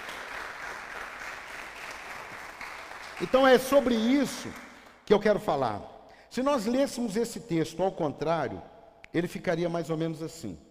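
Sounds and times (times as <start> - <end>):
church congregation applauding: 0.0 - 5.3
speech: 3.2 - 10.6.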